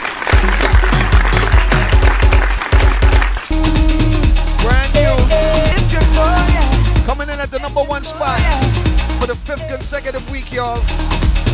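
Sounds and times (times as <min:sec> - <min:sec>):
crowd applause: 0:00.0 - 0:03.6
rhythmic musical track with thumping bass beats and falling tones: 0:00.3 - 0:11.5
speech: 0:09.8 - 0:11.5.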